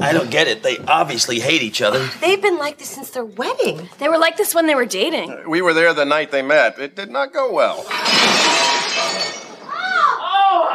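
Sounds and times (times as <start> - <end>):
speech: 0.0 - 9.3
dishes breaking: 7.8 - 10.1.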